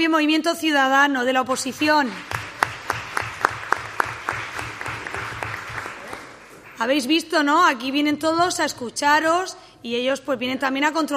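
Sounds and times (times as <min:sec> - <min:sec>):
speech: 0:00.0 - 0:02.4, 0:06.8 - 0:11.1
applause: 0:01.5 - 0:06.8.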